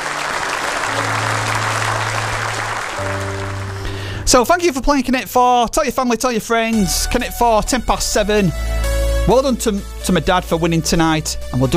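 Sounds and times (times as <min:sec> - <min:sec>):
audience applause: 0:00.0 - 0:04.3
speech: 0:04.3 - 0:08.7, 0:09.3 - 0:11.7.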